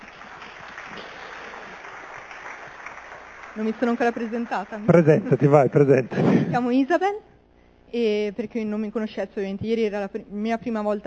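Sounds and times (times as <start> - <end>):
applause: 0.0 - 6.0
speech: 3.6 - 7.3, 7.9 - 11.0.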